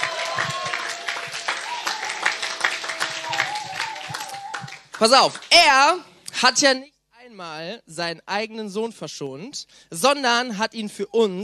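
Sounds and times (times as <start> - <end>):
crowd applause: 0.0 - 5.5
speech: 5.0 - 11.4.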